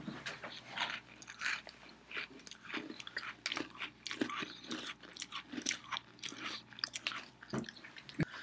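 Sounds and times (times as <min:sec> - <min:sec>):
birthday cake Oreo cookies being bitten and chewed: 0:00.1 - 0:08.3.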